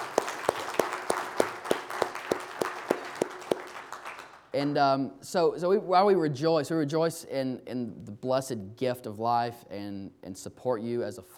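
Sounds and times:
audience applauding: 0.0 - 4.6
speech: 4.6 - 11.3.

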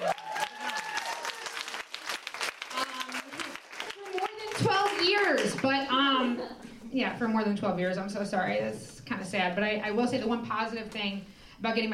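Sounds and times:
audience clapping: 0.0 - 6.1
speech: 5.6 - 11.9.

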